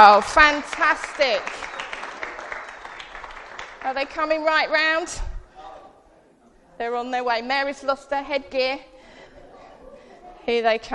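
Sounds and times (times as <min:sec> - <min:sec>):
speech: 0:00.0 - 0:01.7, 0:03.8 - 0:05.3, 0:06.8 - 0:08.9, 0:10.4 - 0:10.9
crowd applause: 0:00.2 - 0:04.4.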